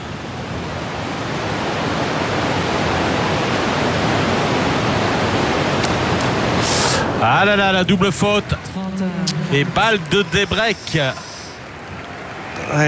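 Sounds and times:
rain falling on a roof: 0:00.0 - 0:08.7, 0:09.4 - 0:12.8
speech: 0:07.2 - 0:11.3, 0:12.7 - 0:12.8.

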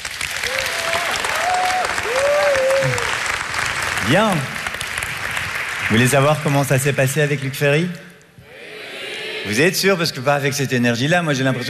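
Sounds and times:
audience applause: 0:00.0 - 0:06.8
whoops and cheers: 0:00.4 - 0:03.2
speech: 0:04.1 - 0:04.6, 0:05.9 - 0:08.1, 0:09.5 - 0:11.6.

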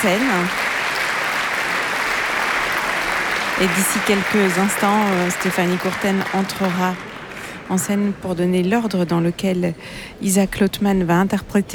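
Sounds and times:
speech: 0:00.0 - 0:00.6, 0:03.6 - 0:07.1, 0:07.7 - 0:11.7
studio audience applause: 0:00.0 - 0:08.4.

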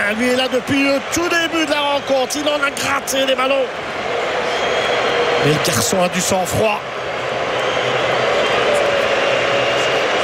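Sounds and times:
football supporters whistling in a stadium: 0:00.0 - 0:10.2
speech: 0:00.1 - 0:04.3, 0:05.4 - 0:07.0.

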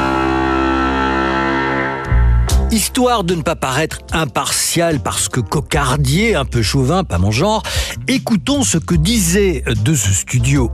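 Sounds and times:
short siren blast: 0:00.0 - 0:02.5
speech: 0:02.7 - 0:10.7.

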